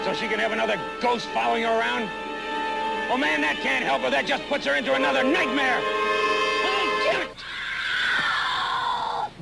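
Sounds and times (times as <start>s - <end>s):
speech: 0.1s - 2.3s, 3.1s - 6.1s
woman screaming: 5.8s - 9.3s.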